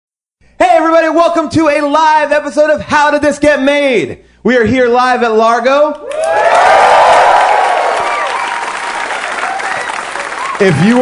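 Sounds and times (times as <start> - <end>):
speech: 1.0 - 6.9, 10.6 - 11.0
cheering and whoops: 6.1 - 11.0
live audience applause: 6.1 - 11.0.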